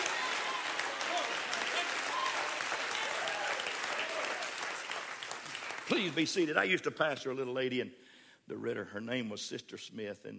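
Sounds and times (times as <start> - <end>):
audience clapping hands: 0.0 - 6.5
speech: 5.9 - 10.3.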